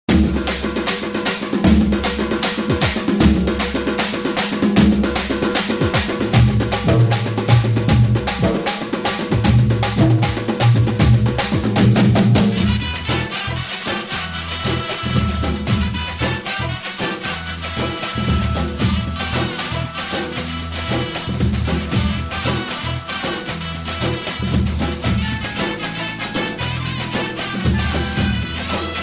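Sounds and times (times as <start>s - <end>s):
Tamil tone: 0.1s - 29.0s.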